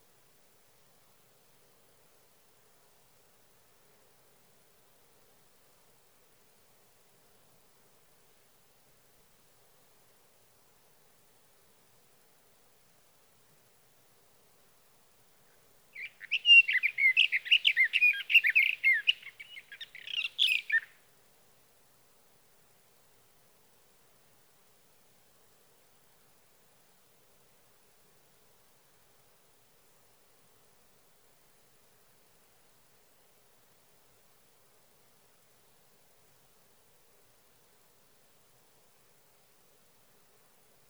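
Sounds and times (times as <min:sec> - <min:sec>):
sage thrasher: 0:16.0 - 0:20.9.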